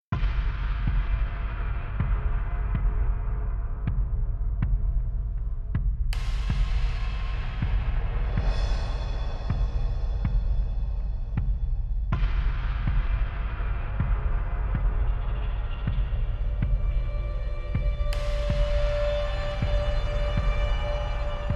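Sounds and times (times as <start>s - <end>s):
dark slow road music: 0.2s - 21.5s.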